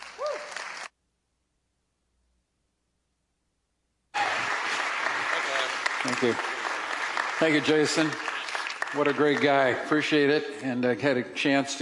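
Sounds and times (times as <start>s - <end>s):
audience applause: 0.0s - 0.9s, 4.2s - 10.2s
speech: 6.0s - 6.5s, 7.4s - 8.3s, 8.9s - 11.7s.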